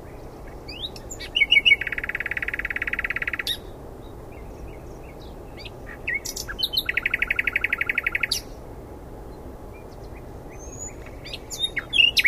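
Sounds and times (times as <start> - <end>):
Common nightingale Luscinia megarhynchos song with whistles and rattles: 0.7 - 3.6, 5.9 - 8.4, 10.6 - 12.2.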